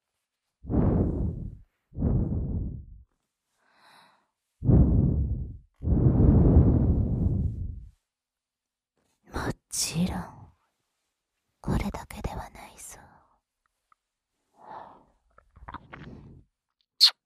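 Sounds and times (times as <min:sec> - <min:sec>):
hot breath blown close to the microphone: 0:00.6 - 0:03.0, 0:04.6 - 0:07.9.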